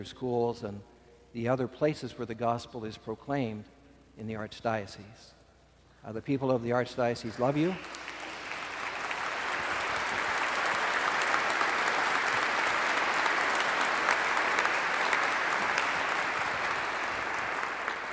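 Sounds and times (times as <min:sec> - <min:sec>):
speech: 0:00.0 - 0:05.4, 0:06.0 - 0:08.1
audience applause: 0:07.2 - 0:18.1.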